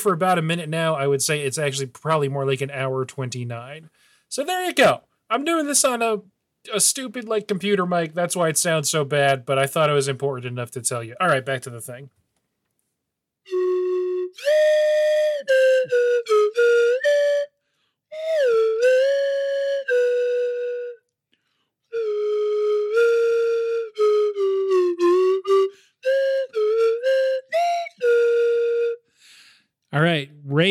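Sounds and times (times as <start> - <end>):
speech: 0.0 - 12.2
whistled tune: 13.5 - 21.1, 21.8 - 29.4.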